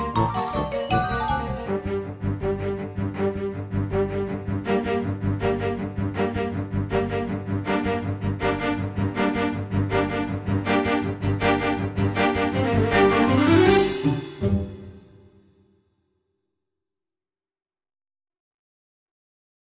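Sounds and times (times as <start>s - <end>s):
violoncello: 0.0s - 15.0s.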